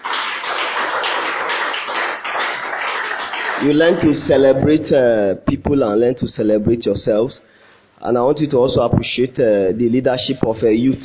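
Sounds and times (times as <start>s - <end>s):
crowd clapping: 0.0s - 4.1s
speech: 3.6s - 11.0s.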